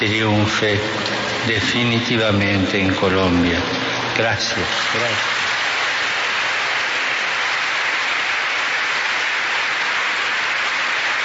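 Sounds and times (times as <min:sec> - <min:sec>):
speech: 0:00.0 - 0:05.4
applause from thousands of attendees: 0:04.0 - 0:11.2.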